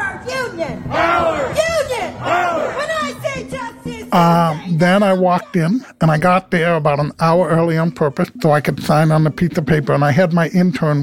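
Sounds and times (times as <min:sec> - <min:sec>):
union protest rally crowd chanting: 0:00.0 - 0:04.8
speech: 0:00.2 - 0:01.3, 0:04.1 - 0:11.0.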